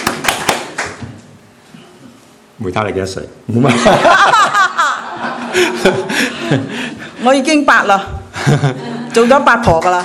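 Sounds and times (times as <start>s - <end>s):
audience clapping: 0.0s - 1.3s
speech: 2.6s - 4.5s, 5.6s - 10.0s
laughter: 3.7s - 7.1s, 8.3s - 9.4s.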